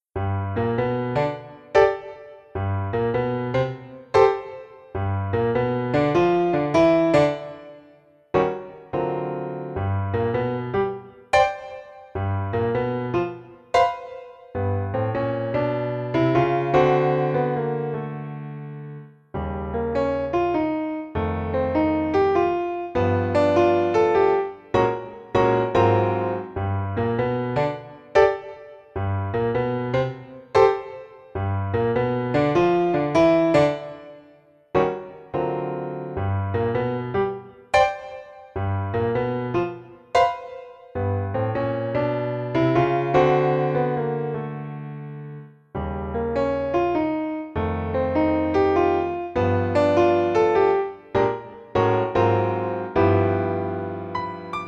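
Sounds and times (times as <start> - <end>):
solo piano: 0.0 - 54.6.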